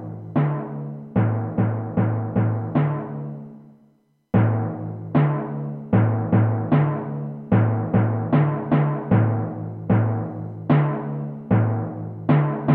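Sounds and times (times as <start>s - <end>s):
timpani etude: 0.0s - 3.6s, 4.4s - 12.7s.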